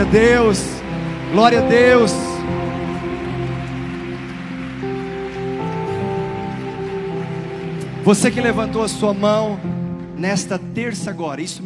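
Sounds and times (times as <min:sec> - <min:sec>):
speech: 0:00.0 - 0:02.6, 0:08.1 - 0:11.6
applause: 0:00.0 - 0:09.8.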